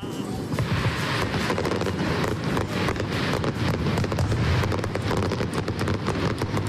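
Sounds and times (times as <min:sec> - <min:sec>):
fireworks final barrage: 0:00.0 - 0:06.6.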